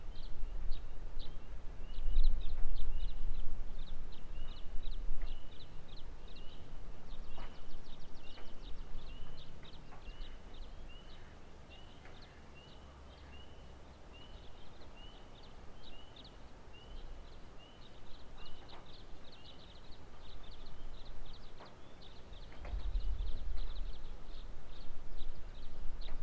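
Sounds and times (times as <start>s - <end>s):
birds singing at dawn: 0.0s - 26.2s.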